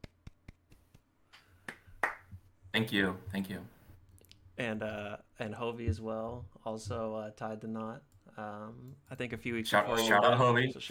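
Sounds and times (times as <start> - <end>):
round of applause: 1.7 - 2.3
speech: 2.8 - 3.8, 4.6 - 10.8.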